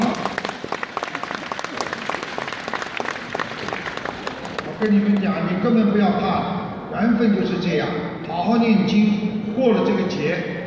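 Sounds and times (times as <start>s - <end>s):
audience applause: 0.0s - 5.2s
speech: 4.8s - 10.5s.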